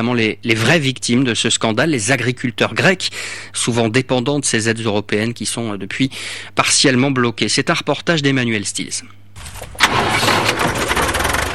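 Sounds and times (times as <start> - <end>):
speech: 0.0 - 10.3
small tractor engine starting: 9.4 - 11.5.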